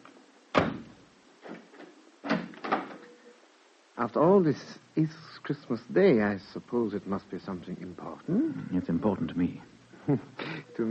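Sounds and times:
door being bolted shut: 0.5 - 0.9, 2.2 - 3.0
speech: 4.0 - 10.8.

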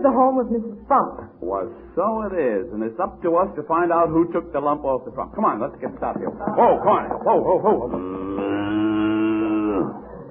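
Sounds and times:
speech: 0.0 - 8.8
laughter: 6.0 - 10.2
cow mooing while pulling a milk wagon: 7.9 - 10.0.

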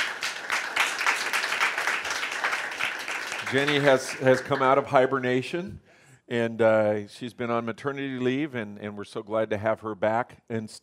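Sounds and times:
audience applause: 0.0 - 5.2
speech: 3.5 - 10.8.

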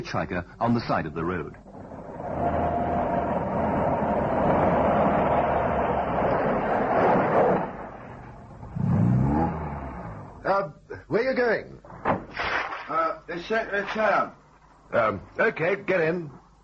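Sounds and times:
speech: 0.0 - 1.7, 10.6 - 11.8, 13.3 - 16.4
car driving on road: 1.6 - 10.4.

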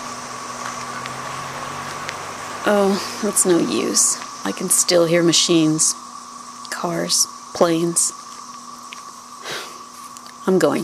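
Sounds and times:
13-year cicadas buzzing: 0.0 - 10.8
speech: 2.6 - 6.0, 6.8 - 8.2, 10.5 - 10.8.

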